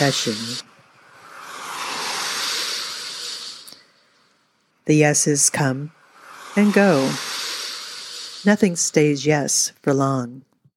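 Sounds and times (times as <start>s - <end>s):
speech: 0.0s - 0.7s, 4.9s - 6.0s, 6.6s - 7.3s, 8.4s - 10.5s
car tires hissing on wet concrete: 0.0s - 4.0s, 6.0s - 8.9s.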